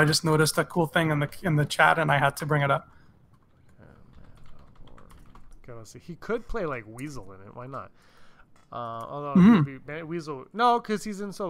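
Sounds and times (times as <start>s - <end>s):
speech: 0.0s - 3.0s, 5.7s - 8.1s, 8.7s - 11.4s
typing a search on a computer keyboard: 3.3s - 5.7s.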